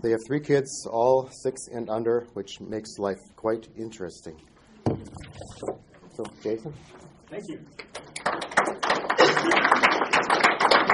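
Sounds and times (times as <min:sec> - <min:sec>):
speech: 0:00.0 - 0:09.8
audience clapping: 0:07.8 - 0:10.9.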